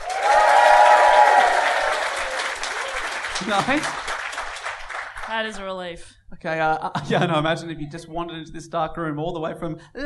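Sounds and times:
crowd clapping: 0.0 - 5.6
speech: 3.5 - 4.1, 5.3 - 10.0.

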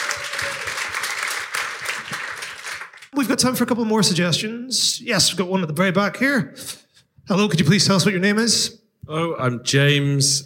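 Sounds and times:
audience applause: 0.0 - 3.1
speech: 3.2 - 10.4.

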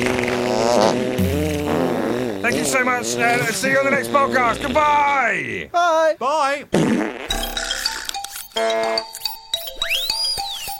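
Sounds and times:
fart noise from opened jar: 0.0 - 5.2, 6.7 - 9.1
speech: 2.6 - 7.5, 8.6 - 9.1.

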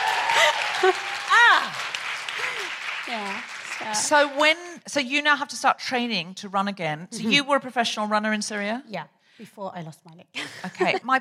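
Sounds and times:
audience applause: 0.0 - 4.6
speech: 0.8 - 1.9, 3.1 - 11.2.

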